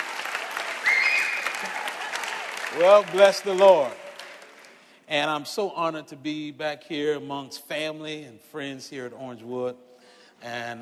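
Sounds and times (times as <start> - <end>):
audience clapping hands: 0.0 - 5.1
speech: 2.8 - 4.0, 5.1 - 10.8.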